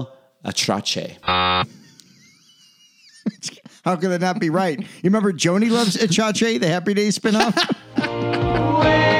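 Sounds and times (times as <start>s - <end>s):
speech: 0.0s - 1.8s, 3.2s - 9.1s
short loud harsh buzzer blast: 1.2s - 1.6s
laughter: 1.6s - 6.3s, 7.2s - 9.1s.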